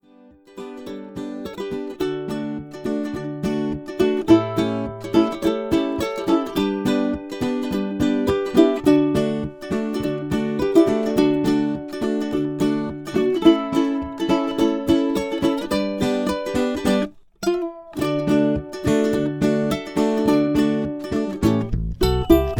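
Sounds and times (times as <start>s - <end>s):
ukulele: 0.0s - 22.5s.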